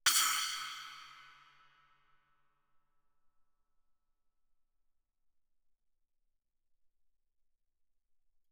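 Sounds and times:
suspended cymbal splash with stick played loud: 0:00.1 - 0:01.7.

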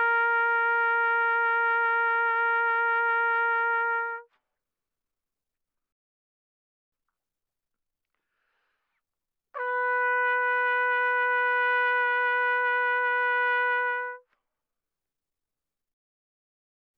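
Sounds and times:
soft trumpet vibrato notes from C4 to B4: 0:00.0 - 0:04.3, 0:09.6 - 0:14.2.

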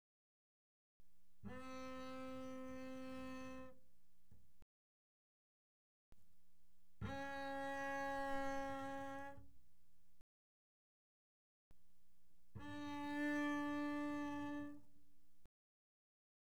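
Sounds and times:
double bass played arco mezzo forte on the D string: 0:01.3 - 0:04.4, 0:07.0 - 0:09.8, 0:12.4 - 0:15.0.

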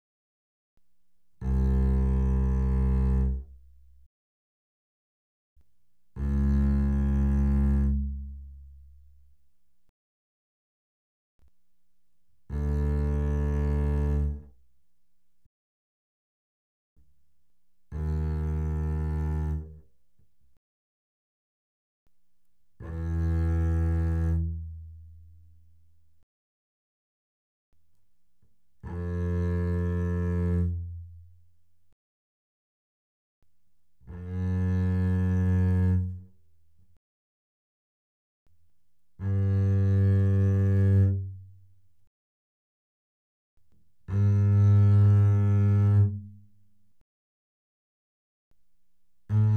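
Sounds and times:
double bass bowed fortissimo on the A string: 0:01.4 - 0:03.9, 0:06.1 - 0:09.2, 0:12.4 - 0:14.6, 0:17.9 - 0:19.9, 0:22.8 - 0:25.7, 0:28.8 - 0:31.5, 0:34.1 - 0:36.5, 0:39.2 - 0:41.7, 0:44.0 - 0:46.7, 0:49.2 - 0:49.5.

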